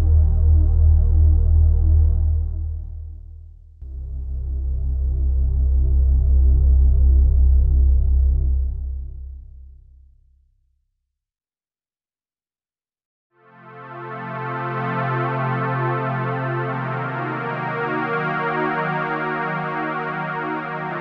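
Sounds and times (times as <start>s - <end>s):
synthesizer drone in C: 0.0s - 3.2s, 3.8s - 9.2s, 14.0s - 21.0s.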